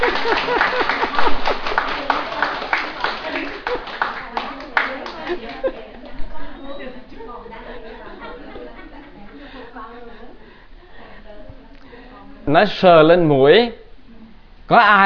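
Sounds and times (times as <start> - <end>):
audience scattered hand claps: 0.0 - 5.8
laughter: 0.0 - 11.3
speech: 0.3 - 1.6, 12.5 - 13.8, 14.7 - 15.0.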